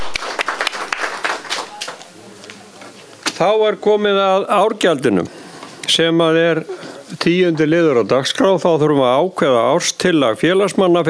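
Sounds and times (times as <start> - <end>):
audience clapping for newly elected committee members: 0.0 - 2.6
speech: 3.4 - 11.0.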